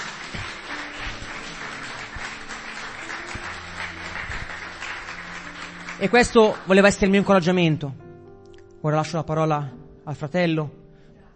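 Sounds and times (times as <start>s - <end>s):
audience applause: 0.0s - 7.3s
speech: 6.0s - 8.0s, 8.8s - 10.8s.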